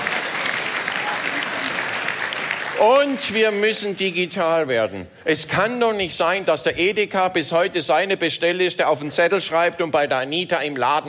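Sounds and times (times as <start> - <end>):
audience applause: 0.0 - 3.9
speech: 2.8 - 11.0.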